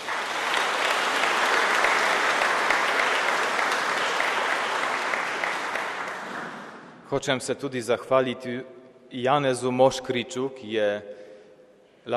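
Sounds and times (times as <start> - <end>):
audience applause: 0.0 - 7.0
speech: 7.1 - 11.2.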